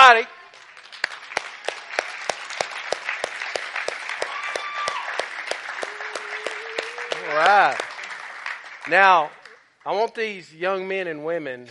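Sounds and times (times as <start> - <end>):
speech: 0.1 - 0.4, 8.9 - 11.7
audience applause: 0.6 - 9.6.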